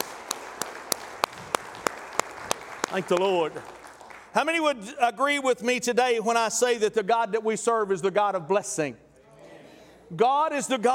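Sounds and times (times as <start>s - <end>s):
audience hand clap of praise: 0.0s - 4.6s
speech: 2.9s - 3.8s, 4.4s - 9.0s, 10.1s - 10.9s.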